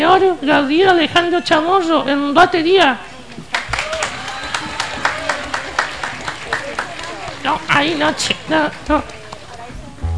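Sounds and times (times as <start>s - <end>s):
speech: 0.2s - 3.1s, 7.8s - 9.2s
few hands clapping: 3.5s - 10.0s.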